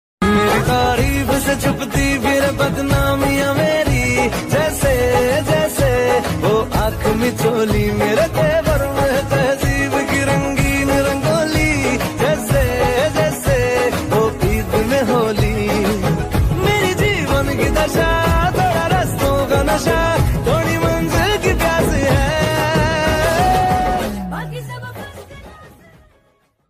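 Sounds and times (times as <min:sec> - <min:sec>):
ringtone music: 0:00.2 - 0:25.2.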